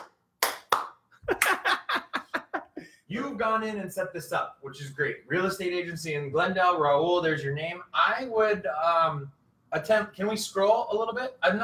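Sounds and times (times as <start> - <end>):
soft hand clapping: 0.0 - 1.8
laughter: 1.2 - 2.8
speech: 3.1 - 11.6.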